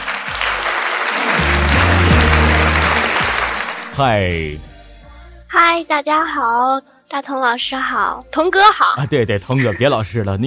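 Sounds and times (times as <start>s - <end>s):
audience applause: 0.0s - 4.0s
speech: 4.0s - 4.7s, 5.7s - 10.4s.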